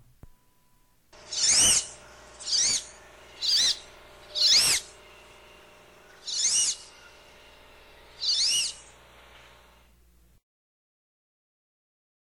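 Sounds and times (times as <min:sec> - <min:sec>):
male wood duck squealing whistles: 0:01.3 - 0:03.8, 0:04.4 - 0:04.9, 0:06.2 - 0:06.9, 0:08.2 - 0:08.8.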